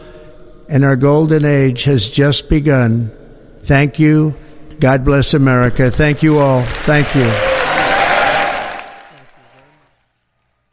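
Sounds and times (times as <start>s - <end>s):
speech: 0.7s - 7.5s
crowd applause after a presidential speech: 6.1s - 10.0s.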